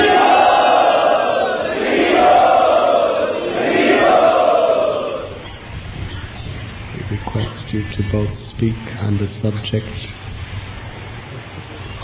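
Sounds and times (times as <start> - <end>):
audience at a religious gathering cheering to welcome a visiting swami: 0.0 - 5.6
speech: 7.7 - 10.2.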